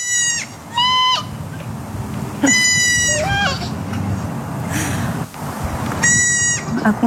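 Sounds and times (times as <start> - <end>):
young goat bleating: 0.0 - 1.3, 2.4 - 3.8, 6.0 - 6.8
outdoor murmur: 0.0 - 7.0
girl imitating goat bleating: 2.4 - 3.6.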